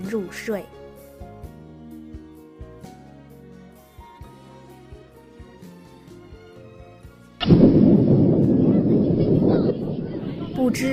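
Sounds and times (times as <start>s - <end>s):
speech: 0.1s - 0.8s, 10.6s - 10.9s
distant rumbling thunder: 7.4s - 10.9s.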